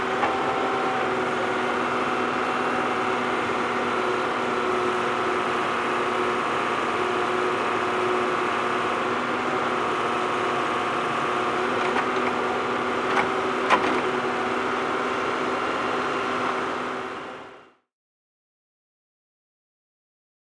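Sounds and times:
ambient construction noise: 0:00.0 - 0:17.6.

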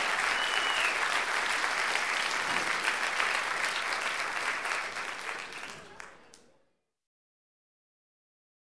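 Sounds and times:
continuous applause: 0:00.0 - 0:06.5.

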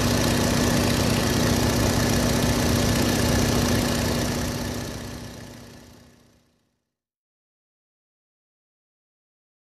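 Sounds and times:
light aircraft engine noise near: 0:00.0 - 0:06.8.

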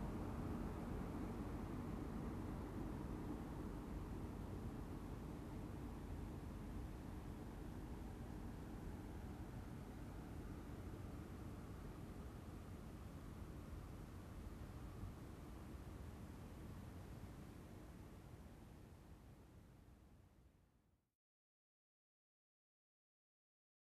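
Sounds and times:
truck driving by slowly: 0:00.0 - 0:18.2.

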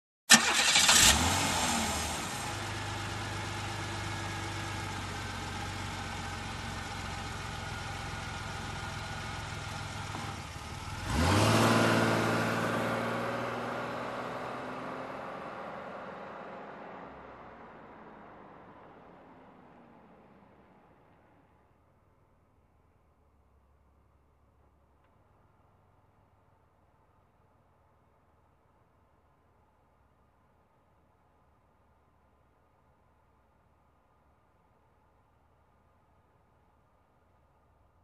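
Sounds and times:
car engine ignition: 0:00.3 - 0:21.8.

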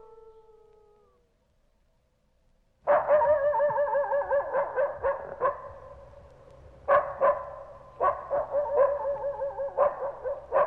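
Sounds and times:
coyote pack howling together: 0:00.0 - 0:01.3, 0:02.9 - 0:05.4, 0:08.2 - 0:10.6.

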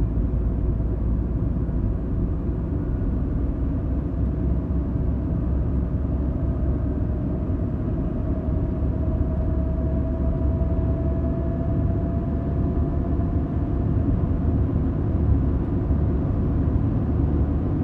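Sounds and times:
calm car ride: 0:00.0 - 0:17.8.

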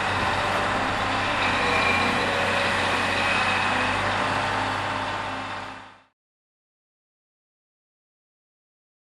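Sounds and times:
construction noise: 0:00.0 - 0:06.2.

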